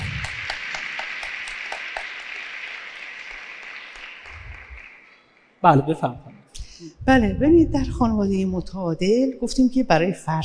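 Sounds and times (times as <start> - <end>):
audience at a talk on family life applauding: 0.0 - 5.5
speech: 5.6 - 10.4.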